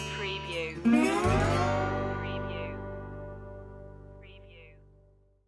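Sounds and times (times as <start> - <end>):
Cajun music stinger: 0.2 - 3.6.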